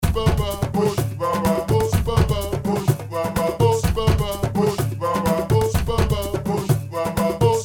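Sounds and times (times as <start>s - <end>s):
Logic music loop: 0.0s - 7.6s.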